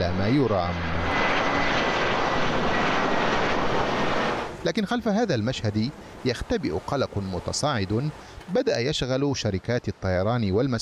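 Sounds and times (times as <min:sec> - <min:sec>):
speech: 0:00.0 - 0:01.8, 0:04.6 - 0:10.8
airplanes taking off and landing at Brussels Airport: 0:00.0 - 0:08.6.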